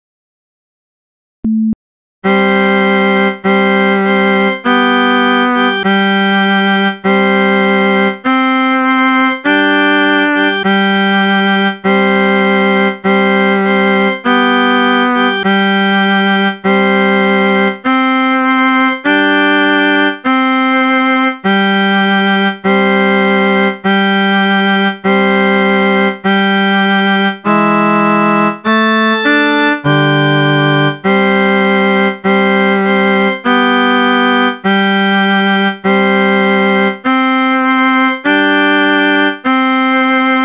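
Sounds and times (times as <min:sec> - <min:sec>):
instrumental accompaniment: 0:02.2 - 0:40.4.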